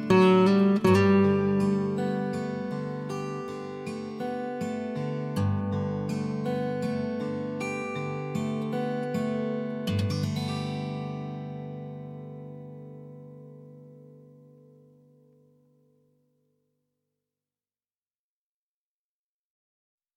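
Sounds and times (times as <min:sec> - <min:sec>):
guitar playing: 0:00.0 - 0:15.7.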